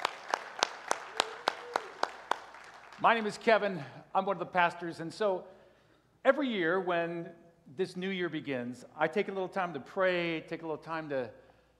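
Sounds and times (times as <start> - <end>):
church congregation clapping to welcome online viewers: 0.0 - 3.8
speech: 3.0 - 5.6, 6.2 - 11.4.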